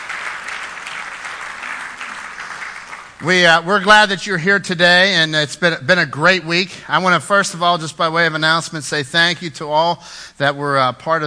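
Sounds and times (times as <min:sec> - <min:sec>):
congregation applauding at an Easter Sunday church service: 0:00.0 - 0:04.1
speech: 0:03.2 - 0:11.2.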